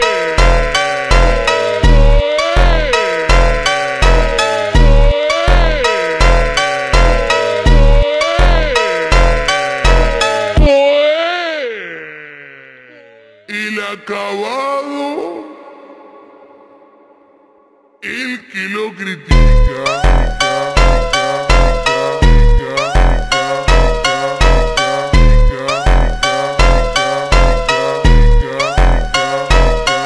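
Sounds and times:
slowed funk music: 0:00.0 - 0:10.8, 0:19.3 - 0:30.0.

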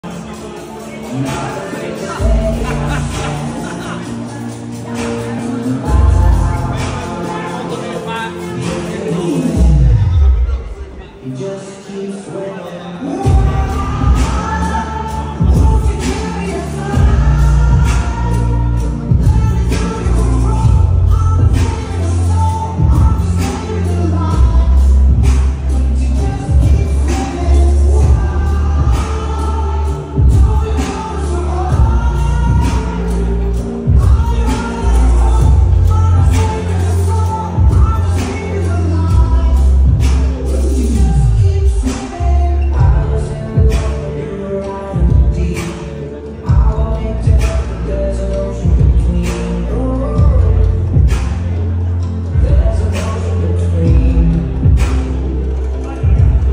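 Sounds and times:
bachata remix: 0:00.0 - 0:56.5
laughter: 0:00.9 - 0:11.3.

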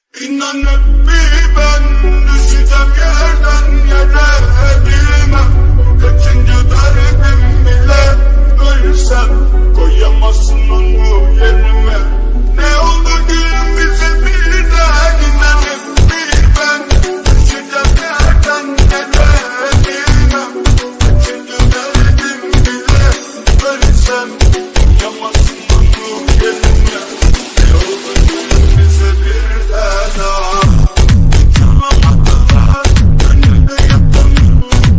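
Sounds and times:
relaxing bass remix music: 0:00.6 - 0:34.9.

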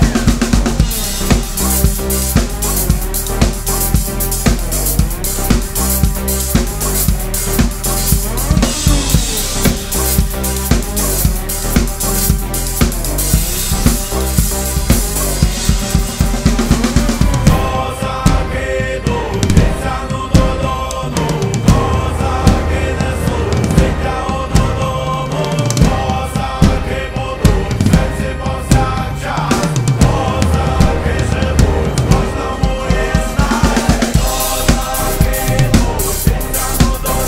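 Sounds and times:
drums playing a cover: 0:00.0 - 0:37.2.

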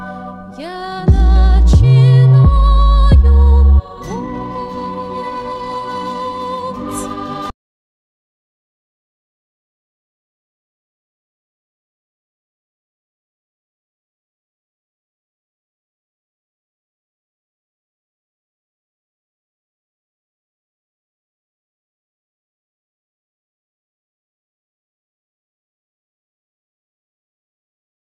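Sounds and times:
trap remix: 0:01.0 - 0:06.0.

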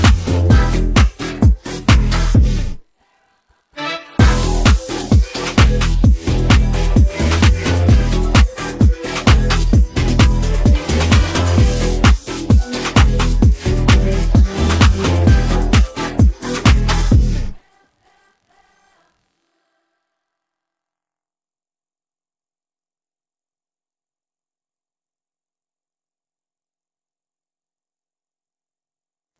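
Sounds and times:
instrumental music: 0:00.0 - 0:02.8, 0:03.8 - 0:17.6.

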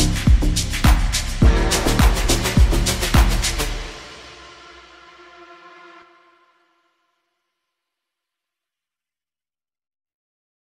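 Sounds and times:
slowed reverb music: 0:00.2 - 0:07.3.

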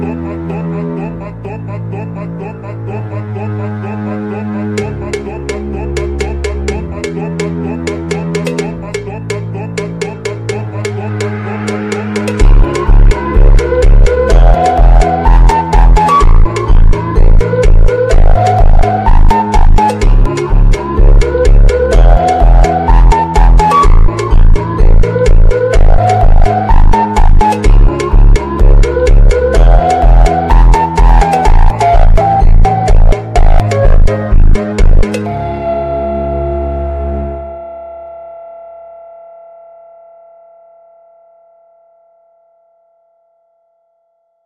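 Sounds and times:
funk music: 0:02.9 - 0:38.0.

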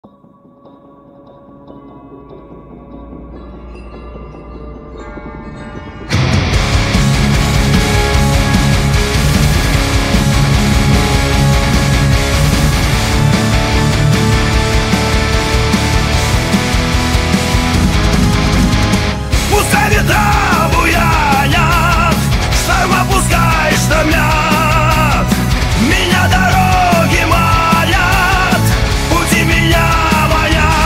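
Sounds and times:
AI cover epic power metal song: 0:01.3 - 0:30.8.

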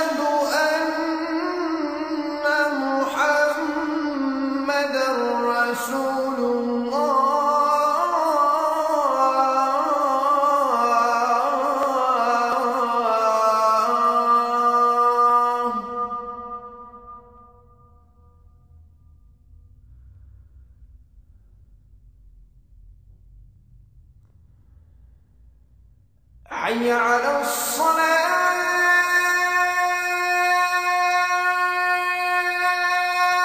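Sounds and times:
azan call to prayer: 0:00.0 - 0:17.4, 0:26.5 - 0:33.4.

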